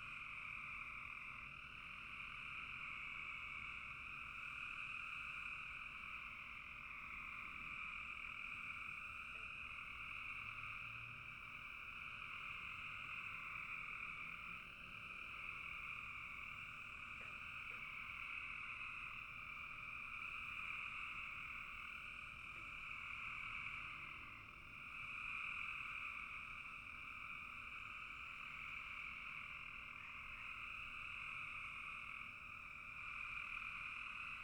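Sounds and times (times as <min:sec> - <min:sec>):
post-dusk frogs croaking in a bog: 0:00.0 - 0:34.4.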